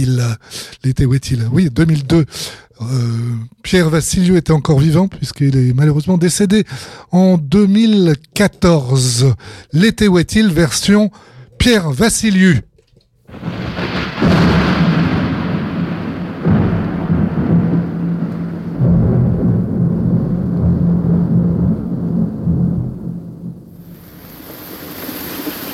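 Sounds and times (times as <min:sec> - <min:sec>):
speech: 0:00.0 - 0:12.7
thunderstorm with rain: 0:13.3 - 0:25.7.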